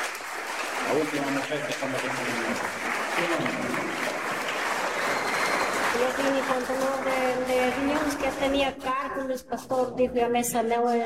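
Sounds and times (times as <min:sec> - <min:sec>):
congregation applauding at a religious healing service: 0:00.0 - 0:08.6
speech: 0:00.9 - 0:04.4, 0:06.0 - 0:11.0.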